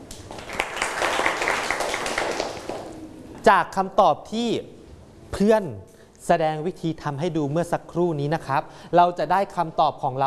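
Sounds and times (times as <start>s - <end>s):
students clapping: 0.0s - 3.0s
speech: 3.4s - 10.2s.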